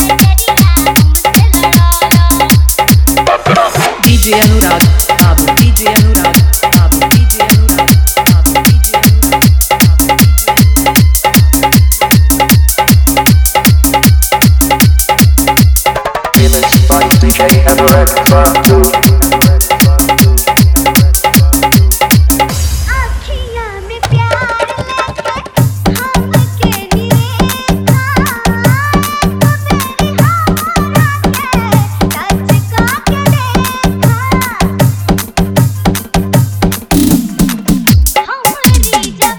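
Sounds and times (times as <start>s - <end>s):
old Bhojpuri dholak bass dance music: 0.0s - 39.3s.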